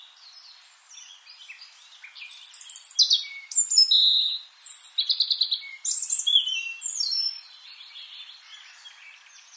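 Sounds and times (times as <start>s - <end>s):
European robin song: 0.0s - 9.5s.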